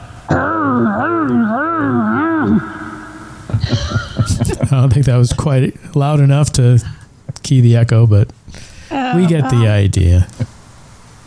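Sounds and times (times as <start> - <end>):
person imitating a dinosaur roar: 0.2 - 3.2
laughter: 3.6 - 5.0, 8.9 - 9.9
speech: 4.8 - 10.4.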